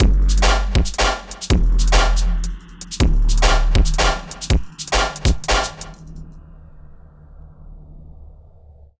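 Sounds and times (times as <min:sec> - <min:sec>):
160 bpm drum and bass drum loop: 0:00.0 - 0:06.2.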